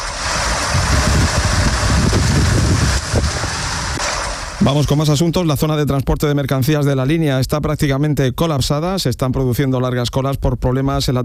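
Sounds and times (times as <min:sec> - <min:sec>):
hail falling during a storm in Lardal, Mula, Murcia: 0:00.0 - 0:05.0
speech: 0:04.6 - 0:11.2.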